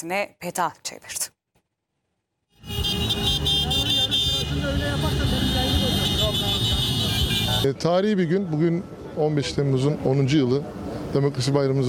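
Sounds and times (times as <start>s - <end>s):
speech: 0.0s - 1.4s, 7.6s - 11.8s
motorcycles and cars rolling out from Taksim in Istanbul: 2.6s - 7.8s.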